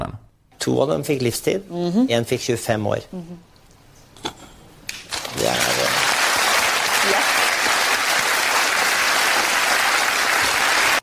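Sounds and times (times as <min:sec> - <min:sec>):
speech: 0:00.6 - 0:03.5
audience applause: 0:05.0 - 0:11.0.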